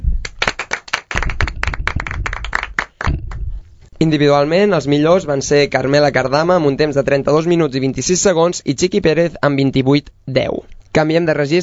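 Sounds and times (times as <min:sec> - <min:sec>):
applause: 0:00.2 - 0:03.4
speech: 0:04.0 - 0:11.6.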